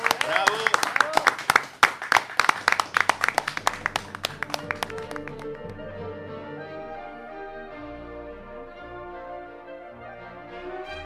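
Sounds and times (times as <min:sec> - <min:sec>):
audience clapping: 0:00.0 - 0:05.8.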